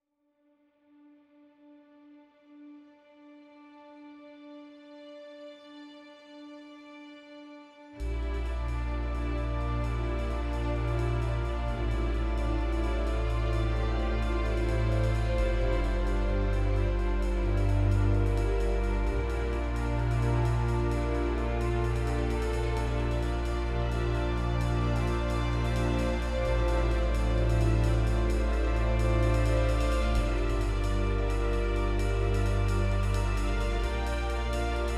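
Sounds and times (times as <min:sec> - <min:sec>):
percussive underscore music: 0:08.0 - 0:34.9.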